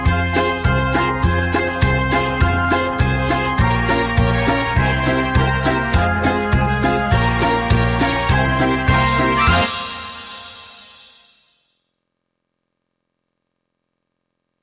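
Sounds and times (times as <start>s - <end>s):
backing track: 0.0s - 11.6s.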